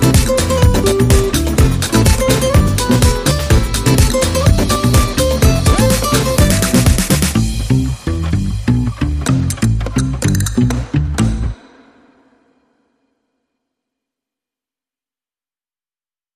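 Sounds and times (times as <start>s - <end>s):
instrumental music mix without sound effects or vocals: 0.0s - 12.4s.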